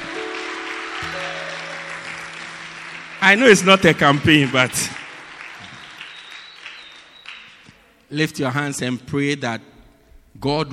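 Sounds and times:
audience clapping: 0.0 - 8.1
speech: 3.2 - 5.0, 8.1 - 9.7, 10.4 - 10.7.

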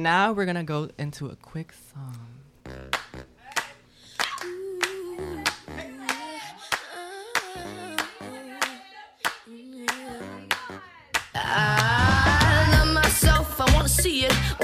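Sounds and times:
speech: 0.0 - 3.3
audience clapping: 2.8 - 14.5.

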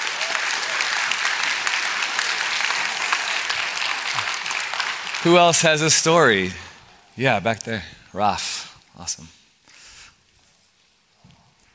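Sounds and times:
audience clapping: 0.0 - 6.8
speech: 5.2 - 9.4.

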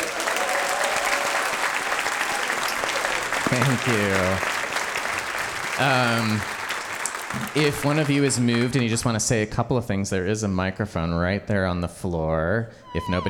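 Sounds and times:
audience applause: 0.0 - 9.2
speech: 3.5 - 4.6, 5.8 - 6.5, 7.3 - 13.2.

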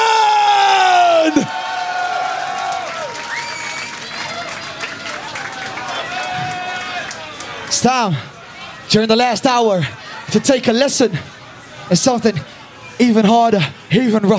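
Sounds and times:
festival crowd cheering and whooping: 0.0 - 7.5
applause: 1.4 - 7.7
whistles: 3.2 - 4.0
speech: 7.8 - 8.3, 8.9 - 11.3, 11.9 - 14.3.

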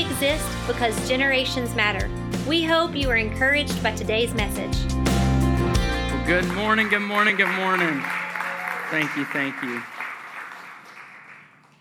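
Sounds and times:
speech: 0.2 - 5.1, 6.3 - 8.2, 8.9 - 10.0
audience clapping: 6.2 - 11.8.

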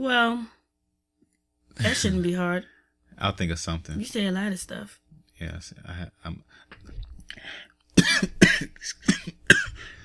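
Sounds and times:
speech: 0.0 - 0.6, 1.8 - 6.7, 7.4 - 9.9
person clearing throat: 8.0 - 10.0
person coughing: 8.0 - 10.0.

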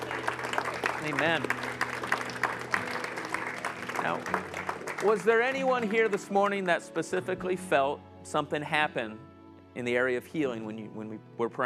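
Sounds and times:
audience round of applause: 0.0 - 6.6
speech: 1.0 - 1.7, 4.0 - 11.6.

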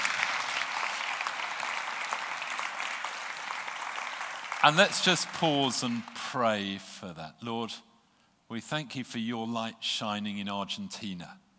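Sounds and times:
audience applause: 0.0 - 6.3
speech: 4.6 - 7.9, 8.5 - 11.4.

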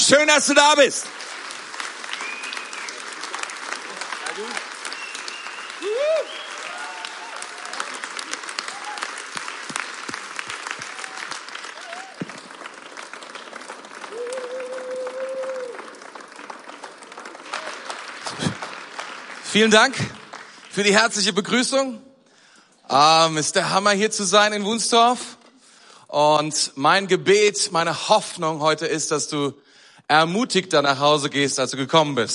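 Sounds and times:
audience applause welcoming a speaker: 0.0 - 21.4
speech: 0.1 - 1.3, 4.4 - 4.6, 19.6 - 20.2, 20.8 - 22.1, 22.9 - 25.4, 26.1 - 32.3.

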